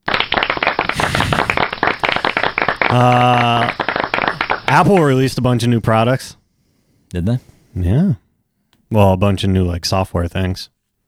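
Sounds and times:
round of applause: 0.0 - 5.4
speech: 2.9 - 3.8, 4.7 - 6.4, 7.1 - 8.2, 8.9 - 10.7.

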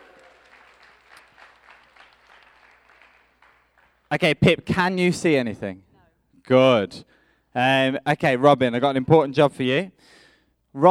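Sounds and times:
audience clapping: 0.0 - 4.2
speech: 4.1 - 5.9, 6.5 - 10.2.

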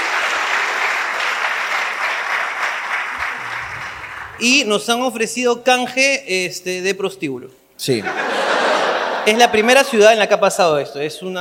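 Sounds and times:
crowd applause: 0.0 - 4.6
speech: 4.4 - 8.4, 9.2 - 11.4
laughter: 8.0 - 10.0.

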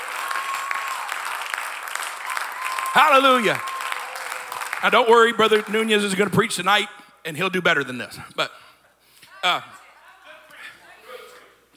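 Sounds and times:
church congregation clapping hands during a service: 0.0 - 6.5
speech: 2.9 - 3.7, 4.8 - 8.6, 9.4 - 9.8.

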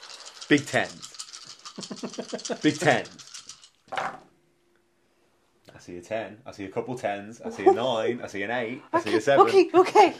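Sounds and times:
dice rattling and clattering: 0.0 - 4.2
speech: 0.5 - 1.1, 1.8 - 3.3, 5.8 - 10.1.

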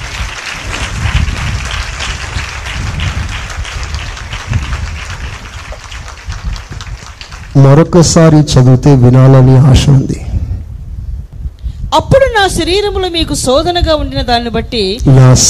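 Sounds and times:
church congregation clapping loudly for another congregation: 0.0 - 8.3
speech: 7.6 - 10.2, 11.9 - 15.4.

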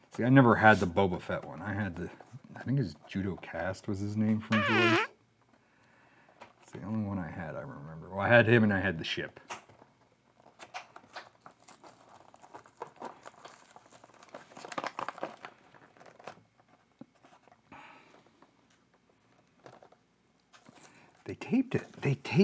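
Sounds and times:
speech: 0.2 - 5.1, 6.8 - 9.6, 21.5 - 22.4
toy packaging crinkling, rustling and tearing open during an unboxing: 11.1 - 16.4.

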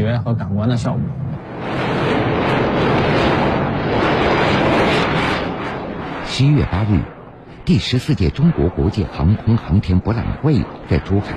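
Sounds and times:
roar of Y-20 tanker aircraft engines: 0.0 - 11.3
speech: 0.2 - 2.0, 6.3 - 11.3.

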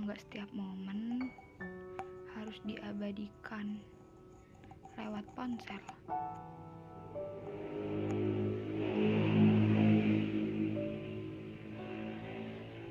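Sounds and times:
speech: 0.1 - 1.8, 2.4 - 4.0, 5.0 - 6.6
vehicle passing at a busy roadside: 6.4 - 12.9.

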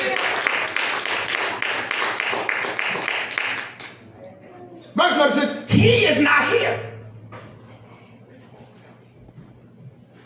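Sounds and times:
murmur of voices: 0.0 - 0.7, 3.8 - 10.2
audience clapping hands: 0.0 - 4.1.

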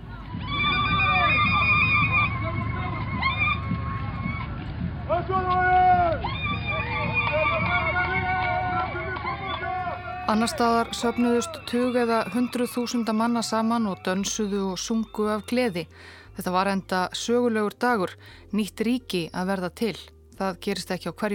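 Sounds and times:
soldiers marching: 0.0 - 11.6
dense crowd noise: 0.0 - 14.1
several women ululating joyfully: 0.3 - 4.5, 5.4 - 12.9
speech: 10.3 - 21.3.

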